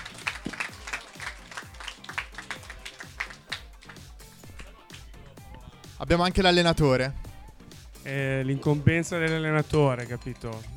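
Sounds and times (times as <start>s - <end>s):
group applause: 0.0s - 4.7s
speech: 6.0s - 7.2s, 8.0s - 10.7s.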